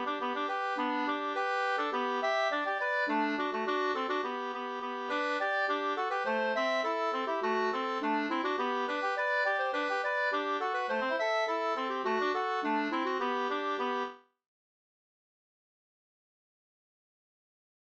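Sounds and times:
polka music: 0:00.0 - 0:14.2.

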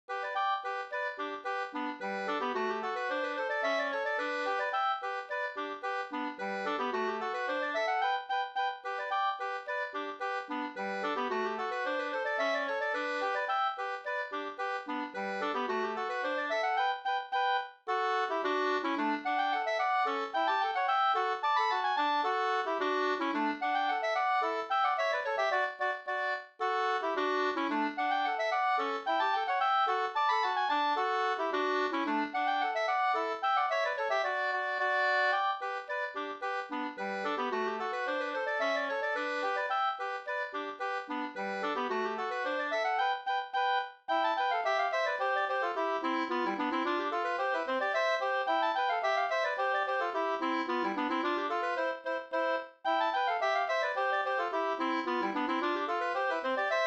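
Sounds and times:
polka music: 0:00.0 - 0:56.8.

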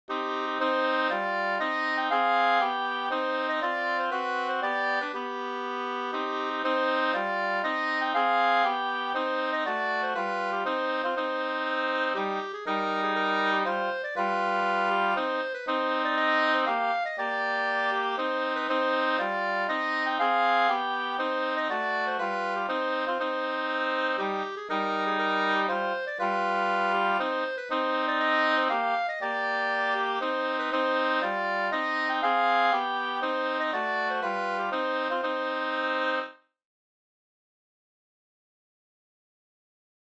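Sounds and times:
two-part polska folk dance tune: 0:00.1 - 0:36.3.

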